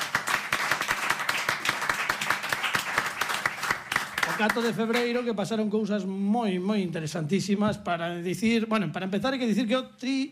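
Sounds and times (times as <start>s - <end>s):
audience applause: 0.0s - 5.2s
speech: 4.4s - 10.3s.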